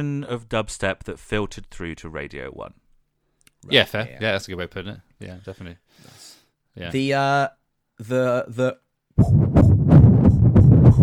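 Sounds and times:
speech: 0.0 - 2.8, 3.6 - 6.2, 6.8 - 9.5
fetal heartbeat recorded in utero: 9.2 - 11.0.

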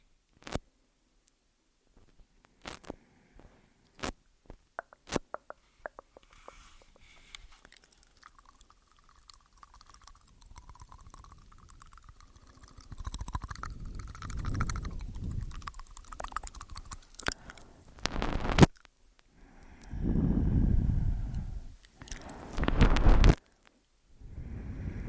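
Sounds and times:
faint hiss: 0.0 - 13.8, 15.0 - 25.0
eating sounds: 4.8 - 18.8, 21.3 - 23.4
wet chewing: 5.4 - 18.9, 21.8 - 23.4.

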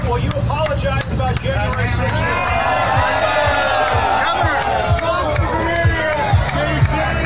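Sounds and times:
speech: 0.1 - 2.8
hostile crowd at the border jeering reporter Jim Acosta: 1.9 - 7.1.

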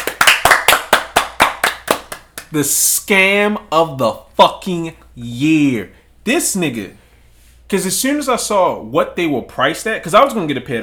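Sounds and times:
round of applause, hands clapping: 0.0 - 2.6
speech: 2.5 - 7.0, 7.7 - 10.8.

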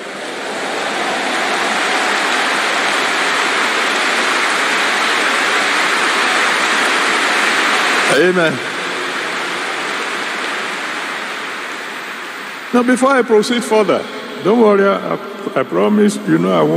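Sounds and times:
audience applause: 0.0 - 16.7
speech: 8.2 - 8.7, 12.7 - 16.7.

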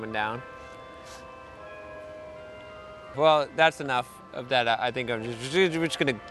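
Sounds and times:
speech: 0.0 - 1.3, 3.1 - 6.2
long series of ringing bells: 0.0 - 6.2.

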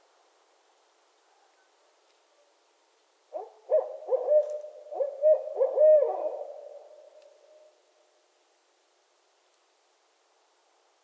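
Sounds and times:
barred owls hooting: 3.4 - 7.0.

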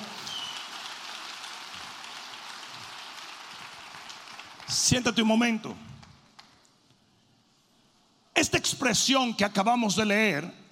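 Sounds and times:
audience applauding: 0.0 - 5.0
speech: 4.7 - 5.9, 8.6 - 10.6.

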